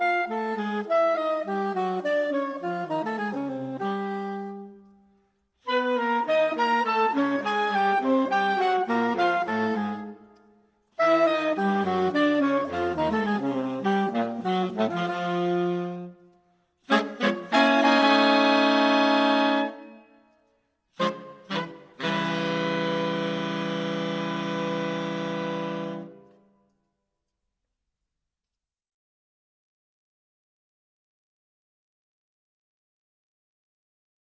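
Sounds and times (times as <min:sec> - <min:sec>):
saxophone: 0:00.0 - 0:20.4, 0:21.0 - 0:26.6.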